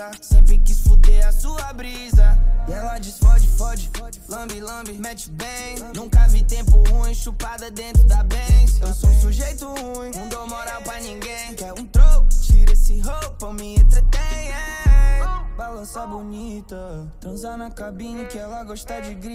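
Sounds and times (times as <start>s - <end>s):
deep bass: 0.3s - 4.2s, 6.0s - 9.7s, 12.0s - 15.8s.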